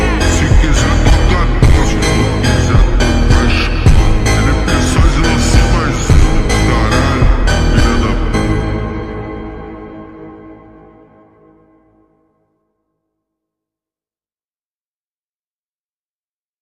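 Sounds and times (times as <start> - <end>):
slowed phonk remix with reverb: 0.0 - 10.5.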